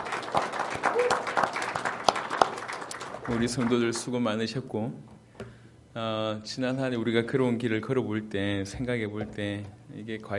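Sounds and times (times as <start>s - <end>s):
audience applause: 0.0s - 4.1s
speech: 3.3s - 5.2s, 6.0s - 10.3s.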